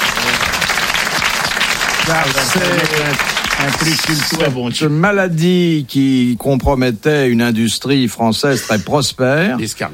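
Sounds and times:
audience applause: 0:00.0 - 0:04.6
speech: 0:02.1 - 0:09.9.

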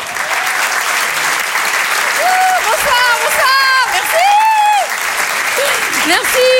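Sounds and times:
audience clapping for a stand-up comedian at a live comedy show: 0:00.0 - 0:06.5
audience whooping and cheering at a live comedy show: 0:00.0 - 0:06.5.

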